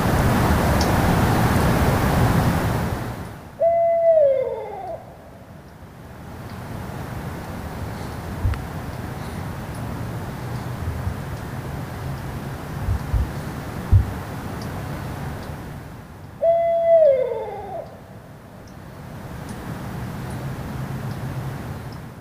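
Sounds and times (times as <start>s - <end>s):
steady low wind noise: 0.0s - 22.1s
barred owl hooting: 3.6s - 5.4s, 16.4s - 18.2s.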